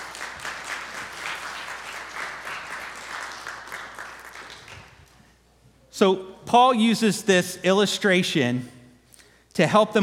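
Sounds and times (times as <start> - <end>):
round of applause: 0.0 - 5.2
speech: 6.0 - 8.8, 9.6 - 10.0.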